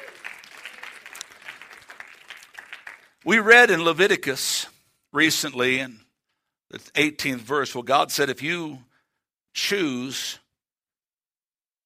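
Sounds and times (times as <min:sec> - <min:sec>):
audience hand clapping: 0:00.0 - 0:03.4
speech: 0:03.2 - 0:06.0, 0:06.7 - 0:08.9, 0:09.6 - 0:10.4.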